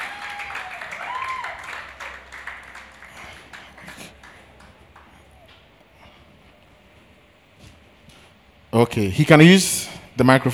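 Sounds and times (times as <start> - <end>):
audience clapping for performer: 0.0 - 5.9
speech: 8.8 - 10.5.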